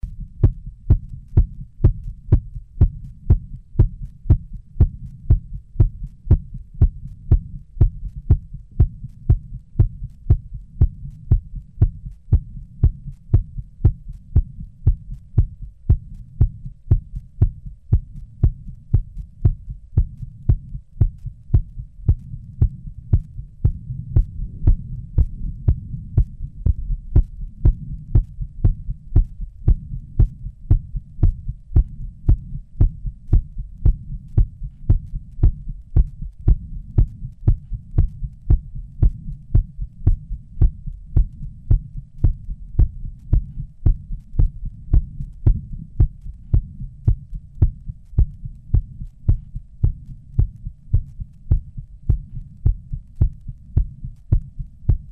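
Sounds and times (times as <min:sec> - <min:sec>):
heartbeat: 0:00.0 - 0:55.1.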